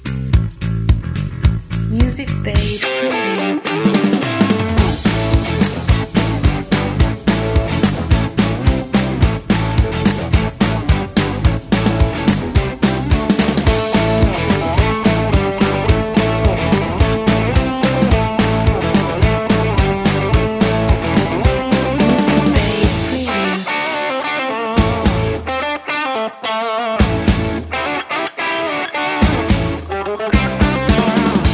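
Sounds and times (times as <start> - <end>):
modern rock and roll music: 0.3 - 31.5.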